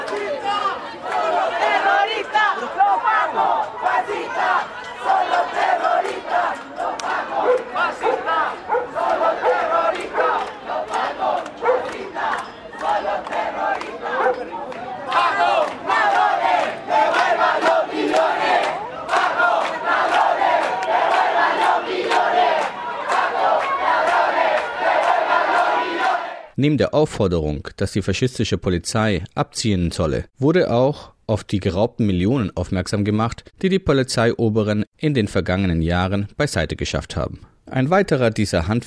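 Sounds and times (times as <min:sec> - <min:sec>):
angry protest crowd chanting: 0:00.0 - 0:26.6
dog barking: 0:07.4 - 0:10.5, 0:11.6 - 0:12.0, 0:14.1 - 0:14.5
speech: 0:26.6 - 0:38.8.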